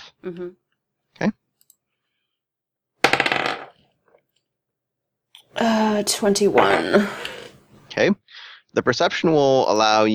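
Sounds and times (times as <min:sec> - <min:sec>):
speech: 0:00.2 - 0:00.6, 0:01.2 - 0:01.4, 0:05.5 - 0:07.4, 0:08.0 - 0:10.1
dice rolling: 0:03.0 - 0:04.2, 0:06.1 - 0:07.6.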